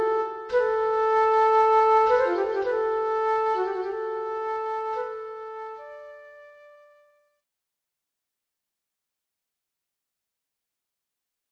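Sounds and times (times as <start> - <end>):
solo flute: 0.0 - 7.4.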